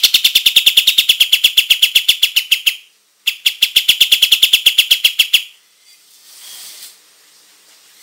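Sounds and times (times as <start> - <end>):
olive-winged bulbul song of very rapid high chirps: 0.0 - 5.6.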